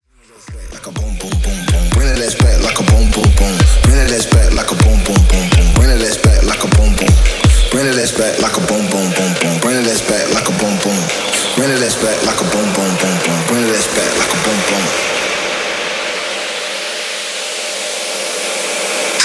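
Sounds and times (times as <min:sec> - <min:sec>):
dirty techno bass at 125 BPM: 0:00.4 - 0:15.6.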